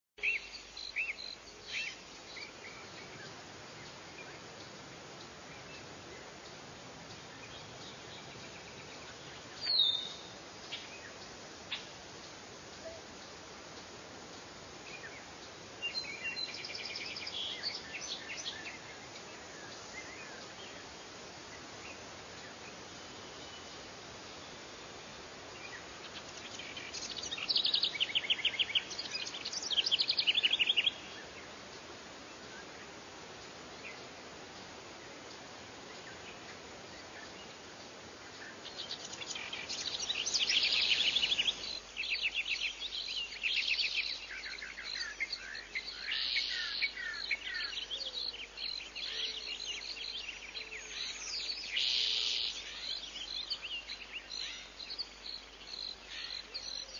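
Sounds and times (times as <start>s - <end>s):
meadow ambience: 0.2s - 56.9s.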